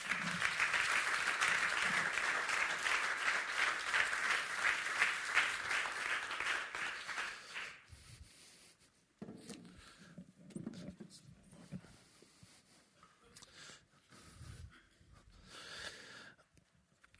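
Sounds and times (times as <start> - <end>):
audience applause: 0.0 - 7.9.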